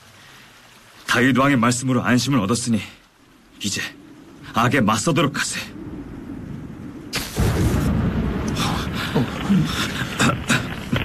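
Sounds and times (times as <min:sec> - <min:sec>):
speech: 0:01.1 - 0:03.0, 0:03.6 - 0:05.8
thunder boom: 0:06.4 - 0:11.0
lightning strike: 0:06.6 - 0:11.0.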